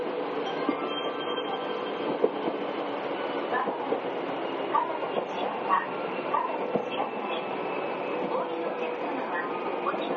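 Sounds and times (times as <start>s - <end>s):
Izukyu 8000 series train running on the Izu Kyuko line: 0.0s - 10.1s.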